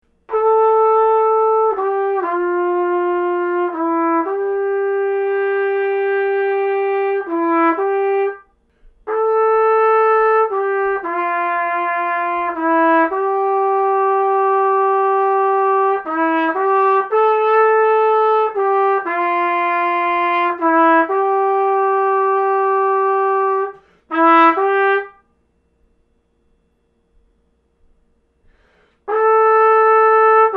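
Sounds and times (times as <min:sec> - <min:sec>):
trumpet: 0:00.0 - 0:25.9, 0:28.4 - 0:30.5.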